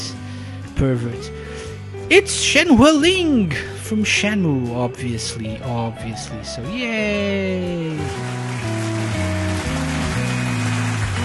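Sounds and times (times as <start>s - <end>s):
speech: 0.8s - 1.4s, 2.1s - 8.5s
tonal musical chord sequence: 5.3s - 11.2s
crowd applause: 7.2s - 11.2s.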